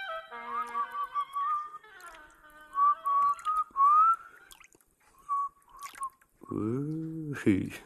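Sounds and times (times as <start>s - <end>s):
person whistling a tune with mouth: 0.5s - 1.8s, 2.7s - 4.4s, 5.2s - 7.3s
person speaking: 6.4s - 7.8s.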